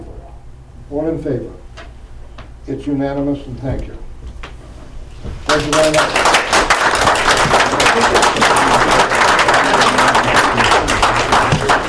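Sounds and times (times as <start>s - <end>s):
speech: 0.9s - 1.6s, 2.6s - 4.1s, 5.6s - 6.4s, 8.0s - 9.1s
round of applause after a vote: 5.4s - 11.8s.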